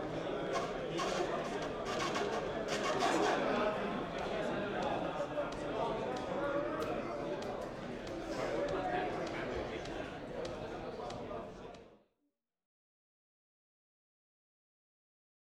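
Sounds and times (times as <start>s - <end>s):
noisy voices in Swedish: 0.0s - 11.8s.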